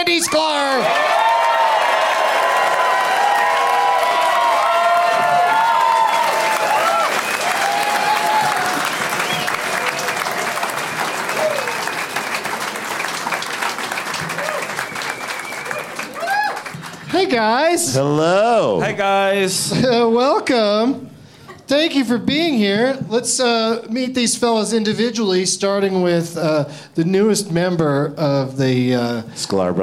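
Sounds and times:
speech: 0:00.0 - 0:01.1, 0:17.3 - 0:21.1, 0:21.7 - 0:29.8
comedy audience applause and whoops as comedians take the stage: 0:00.0 - 0:17.2.

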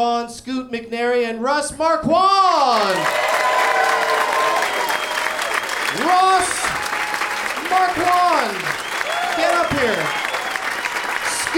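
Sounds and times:
speech: 0:00.0 - 0:03.4, 0:05.9 - 0:06.6, 0:07.7 - 0:08.8, 0:09.4 - 0:10.2
audience clapping and cheering welcoming guests onto a stage: 0:02.6 - 0:11.5.

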